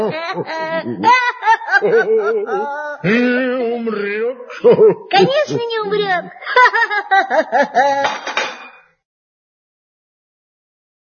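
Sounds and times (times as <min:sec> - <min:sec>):
rhythmic pitched laughter: 0:00.0 - 0:03.8, 0:06.4 - 0:08.5
speech: 0:00.1 - 0:08.3.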